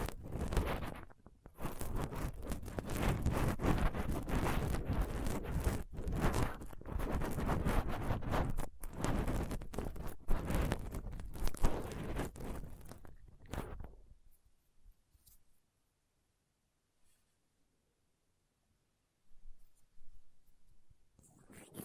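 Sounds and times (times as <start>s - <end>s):
dental pick, tweezers and cotton swab scraping a microphone: 0.0s - 14.4s, 21.2s - 21.8s.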